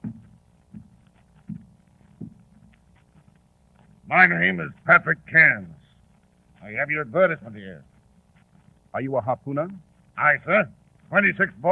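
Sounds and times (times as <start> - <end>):
heavy footsteps coming up the stairs: 0.0 - 4.1
speech: 4.1 - 5.8, 6.7 - 7.9, 8.9 - 11.7.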